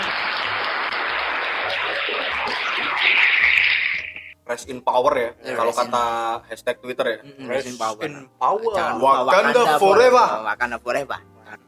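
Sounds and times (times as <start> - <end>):
small group applause: 0.0 - 3.6
speech: 4.5 - 11.6.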